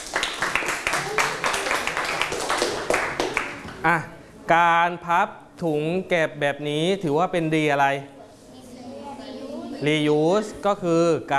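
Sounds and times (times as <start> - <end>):
children clapping their hands: 0.0 - 3.8
speech: 3.8 - 8.2, 9.8 - 11.3.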